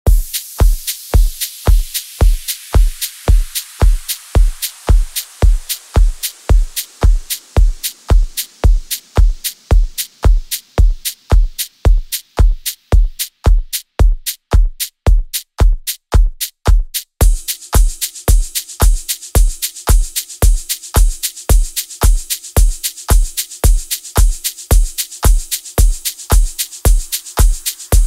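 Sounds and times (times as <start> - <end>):
club mix dance music: 0.1 - 15.8, 17.2 - 28.0.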